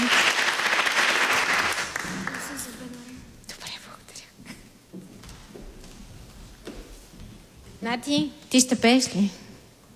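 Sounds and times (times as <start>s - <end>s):
audience applause at a ceremony honouring a writer: 0.0s - 3.2s
speech: 7.8s - 9.4s.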